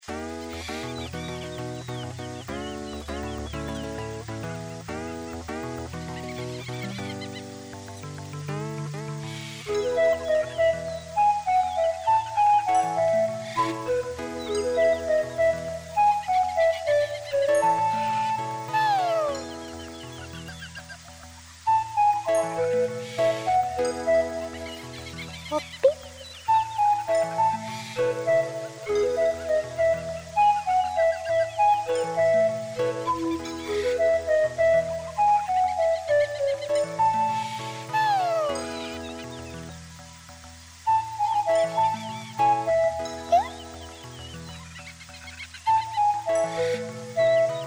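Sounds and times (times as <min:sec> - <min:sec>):
forest background music: 0:00.0 - 0:47.6.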